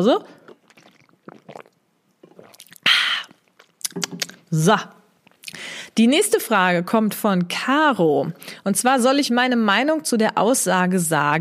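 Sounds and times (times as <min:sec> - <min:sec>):
speech: 0:00.0 - 0:00.4, 0:04.0 - 0:05.0, 0:06.0 - 0:11.4
person sipping a drink: 0:00.2 - 0:04.5.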